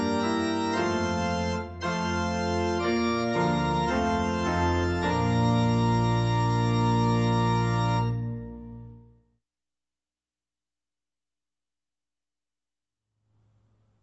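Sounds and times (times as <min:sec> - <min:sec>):
instrumental praise and worship hymn: 0:00.0 - 0:09.2.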